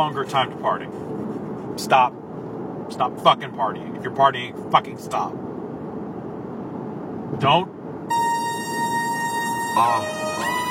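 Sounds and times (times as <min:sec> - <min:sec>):
speech: 0:00.0 - 0:01.1, 0:01.8 - 0:02.2, 0:02.9 - 0:05.4, 0:07.3 - 0:07.8, 0:09.8 - 0:10.7
alarm siren sound effect: 0:08.1 - 0:10.7.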